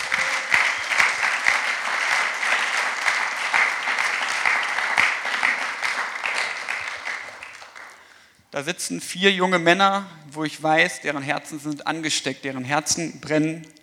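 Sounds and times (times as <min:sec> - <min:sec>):
audience applause: 0:00.0 - 0:08.0
speech: 0:08.6 - 0:13.8.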